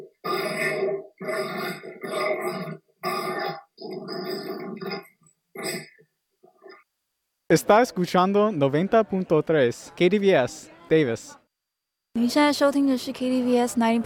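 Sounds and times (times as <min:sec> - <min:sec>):
dogs grunting: 0:00.0 - 0:06.8
speech: 0:07.5 - 0:11.4, 0:12.2 - 0:14.0.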